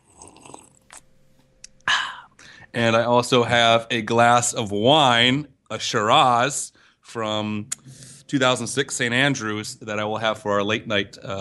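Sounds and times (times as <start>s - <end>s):
person sipping hot coffee from a mug: 0.0s - 1.1s
speech: 2.8s - 11.3s.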